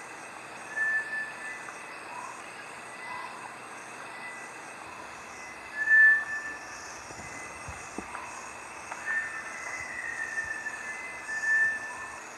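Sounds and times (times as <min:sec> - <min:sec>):
Bartlett's tinamou calling with long pure whistled notes: 0:00.7 - 0:01.6, 0:05.8 - 0:07.5, 0:09.0 - 0:12.2.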